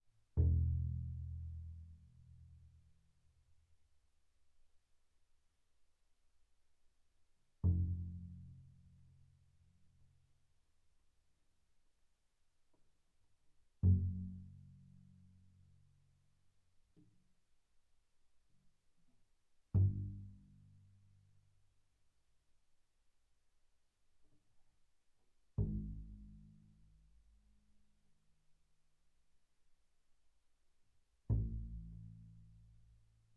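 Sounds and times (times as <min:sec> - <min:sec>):
double bass pizzicato on the E string: 0:00.3 - 0:02.5, 0:07.6 - 0:09.1, 0:13.8 - 0:15.0, 0:19.7 - 0:20.9, 0:25.6 - 0:27.1, 0:31.3 - 0:32.9.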